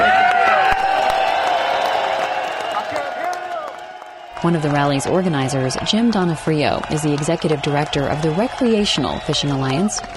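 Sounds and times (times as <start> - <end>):
rally crowd applauding and cheering: 0.0 - 10.1
speech: 4.4 - 10.1.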